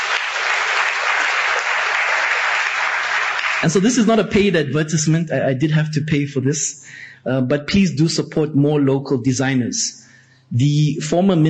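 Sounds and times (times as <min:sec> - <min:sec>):
audience applause: 0:00.0 - 0:03.8
speech: 0:03.6 - 0:11.4.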